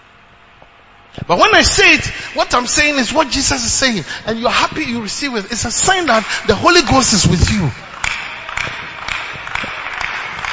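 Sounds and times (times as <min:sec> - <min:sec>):
speech: 0:01.2 - 0:07.9
audience clapping in a steady rhythm: 0:05.7 - 0:10.5.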